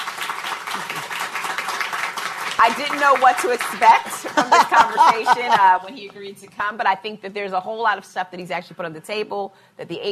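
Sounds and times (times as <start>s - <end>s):
audience applause for a speaker: 0.0s - 5.2s
speech: 2.6s - 10.1s
laughter: 4.0s - 6.0s.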